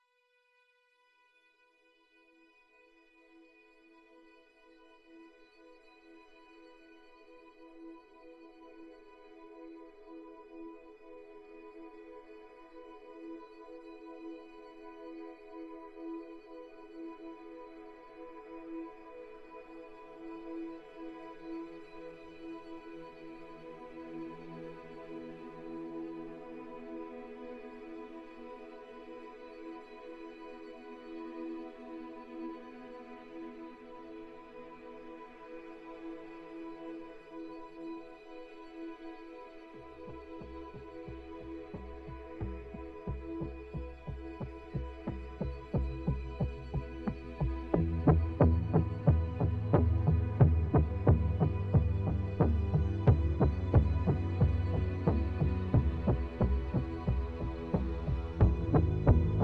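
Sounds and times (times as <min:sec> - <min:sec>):
suspense underscore music: 0:40.0 - 0:59.4.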